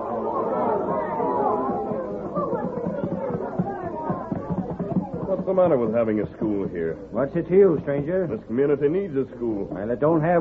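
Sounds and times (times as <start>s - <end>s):
crowd murmuring: 0.0s - 10.3s
speech: 5.5s - 10.3s.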